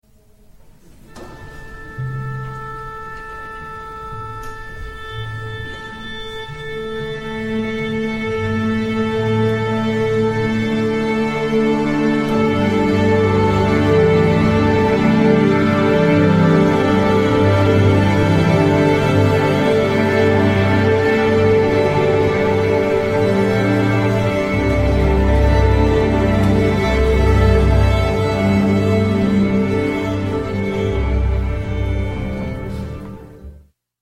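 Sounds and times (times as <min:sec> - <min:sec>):
orchestra: 0:00.1 - 0:33.7.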